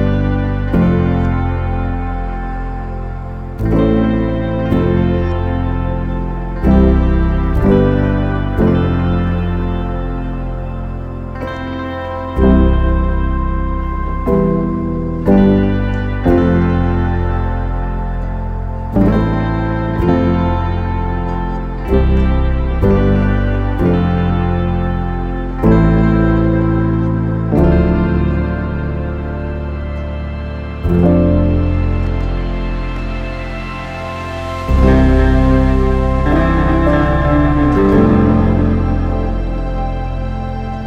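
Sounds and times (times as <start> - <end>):
meditation music: 0.0 - 40.8.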